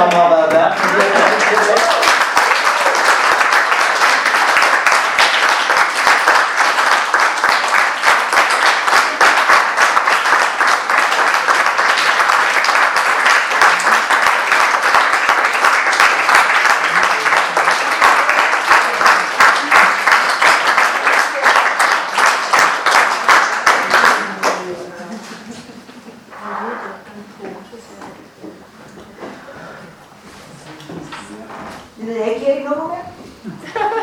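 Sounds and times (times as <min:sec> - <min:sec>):
audience applause: 0:00.1 - 0:24.9
laughter: 0:33.4 - 0:34.0.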